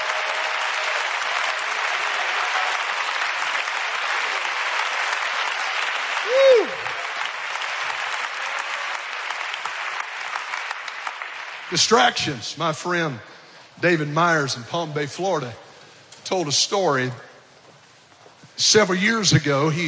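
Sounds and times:
audience clapping hands: 0.0s - 12.5s
speech: 11.7s - 15.6s, 16.3s - 17.3s, 18.6s - 19.8s.

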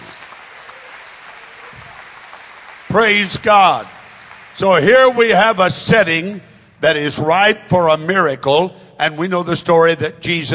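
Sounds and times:
audience clapping hands: 0.0s - 5.8s
speech: 2.9s - 4.0s, 4.6s - 10.5s.

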